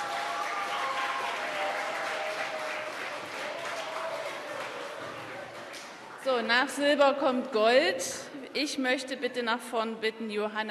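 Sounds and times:
audience applause: 0:00.0 - 0:06.2
speech: 0:06.2 - 0:10.6.

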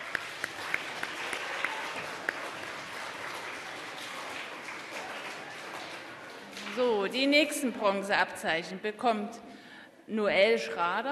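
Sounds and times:
applause: 0:00.0 - 0:07.6
speech: 0:06.8 - 0:11.1.

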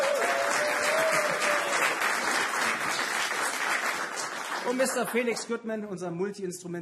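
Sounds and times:
audience applause: 0:00.0 - 0:05.4
speech: 0:04.7 - 0:06.7.

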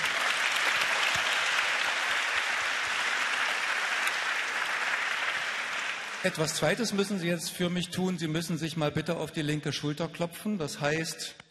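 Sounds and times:
large audience clapping in a hall: 0:00.0 - 0:07.2
speech: 0:06.2 - 0:11.4.

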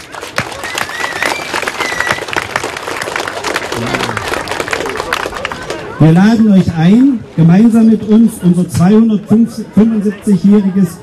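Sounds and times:
audience applause: 0:00.0 - 0:06.0
speech: 0:06.0 - 0:11.0.

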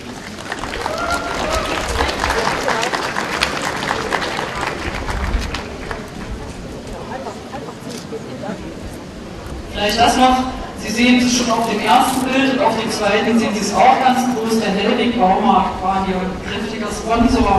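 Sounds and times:
audience applause: 0:00.0 - 0:07.5
speech: 0:09.8 - 0:17.5.

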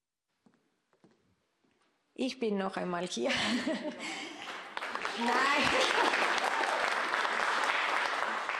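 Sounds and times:
speech: 0:02.2 - 0:04.4, 0:05.2 - 0:06.1
audience applause: 0:04.0 - 0:08.5.

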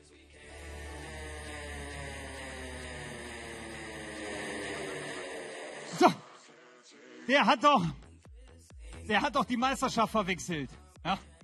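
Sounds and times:
engine starting and droning: 0:00.0 - 0:06.6
faint whine: 0:00.0 - 0:06.8
speech: 0:06.0 - 0:06.2, 0:07.3 - 0:08.0, 0:09.1 - 0:11.3.

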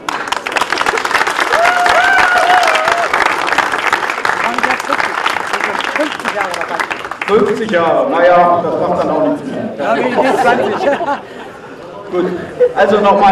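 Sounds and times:
audience applause: 0:00.0 - 0:08.0
speech: 0:06.4 - 0:11.4, 0:12.1 - 0:13.3
laughter: 0:08.2 - 0:13.3.

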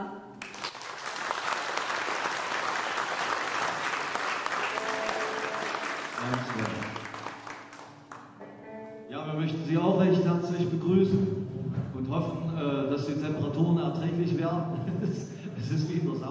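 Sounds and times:
audience applause in a church: 0:00.4 - 0:08.3
speech: 0:09.7 - 0:11.4, 0:12.0 - 0:16.3.

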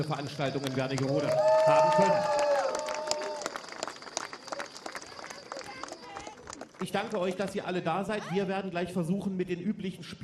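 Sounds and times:
speech: 0:00.0 - 0:02.4, 0:06.8 - 0:10.2
audience applause: 0:00.0 - 0:07.6.

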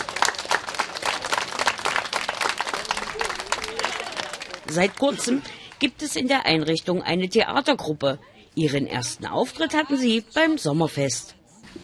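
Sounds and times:
children applauding: 0:00.0 - 0:05.4
speech: 0:04.7 - 0:11.4.

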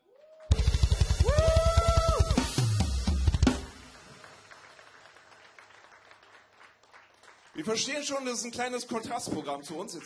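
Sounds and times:
whoops and whistles: 0:00.0 - 0:02.6
crowd applause: 0:00.0 - 0:08.5
speech: 0:07.6 - 0:10.0.

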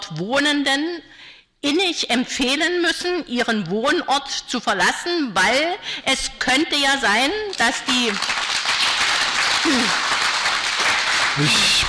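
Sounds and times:
speech: 0:00.1 - 0:08.5, 0:09.6 - 0:10.1, 0:11.4 - 0:11.8
audience applause: 0:08.2 - 0:11.8.

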